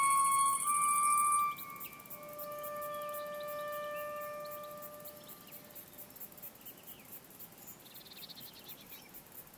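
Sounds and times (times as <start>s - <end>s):
melodic bird song with echo: 0.0s - 5.7s.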